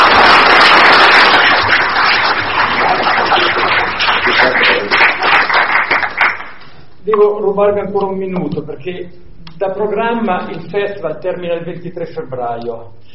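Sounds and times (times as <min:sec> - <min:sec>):
audience applause: 0:00.0 - 0:06.6
speech: 0:07.1 - 0:13.1.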